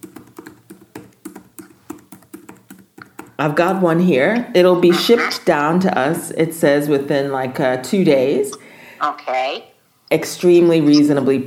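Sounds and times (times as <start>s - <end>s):
typing on a computer keyboard: 0.0s - 3.4s
speech: 3.4s - 11.4s.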